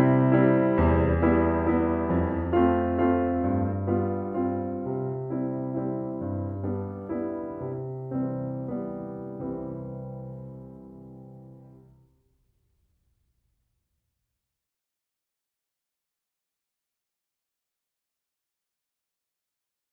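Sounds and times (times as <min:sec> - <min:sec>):
piano: 0:00.0 - 0:12.9.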